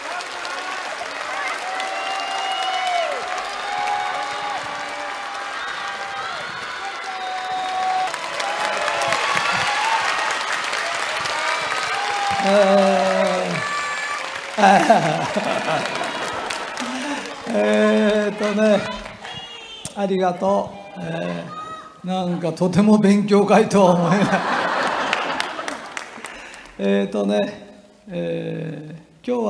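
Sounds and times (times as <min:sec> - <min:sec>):
big audience applause: 0:00.0 - 0:20.0, 0:24.1 - 0:27.1
laughter: 0:08.5 - 0:19.9, 0:23.8 - 0:26.8
speech: 0:12.4 - 0:12.9, 0:14.6 - 0:16.0, 0:17.5 - 0:19.0, 0:20.0 - 0:24.6, 0:26.8 - 0:29.4.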